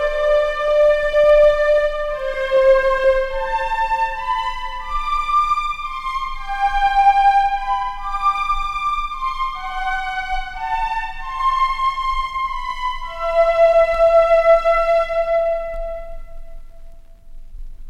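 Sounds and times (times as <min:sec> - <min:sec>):
unaccompanied solo tune: 0:00.0 - 0:16.9.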